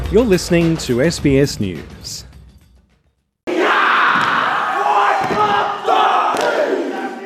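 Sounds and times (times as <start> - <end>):
speech: 0.1 - 2.3
traditional war cry echoing in a theatre in Sydney: 3.5 - 7.2
foot stamping: 4.1 - 6.5.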